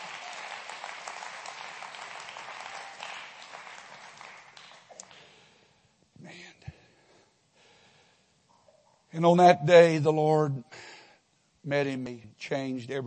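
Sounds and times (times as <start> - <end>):
audience clapping hands: 0.0 - 5.5
speech: 9.2 - 10.9, 11.6 - 13.0.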